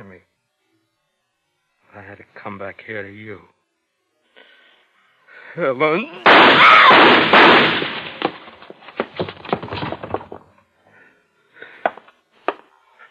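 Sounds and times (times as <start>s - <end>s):
speech: 2.0s - 3.6s, 5.6s - 8.0s
gunshots in a dramatic film scene: 6.2s - 8.6s.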